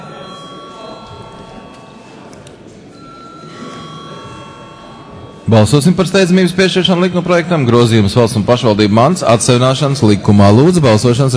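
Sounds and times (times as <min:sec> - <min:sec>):
parliament chamber voting bell ringing: 0:00.0 - 0:06.7
low murmur: 0:00.0 - 0:11.3
speech: 0:05.5 - 0:11.3.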